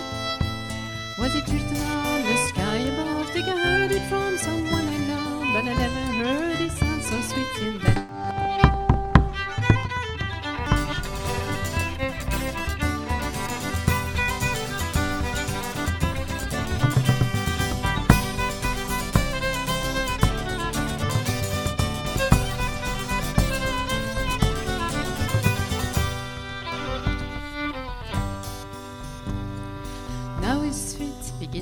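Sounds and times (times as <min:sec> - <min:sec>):
songs: 0:00.0 - 0:31.6.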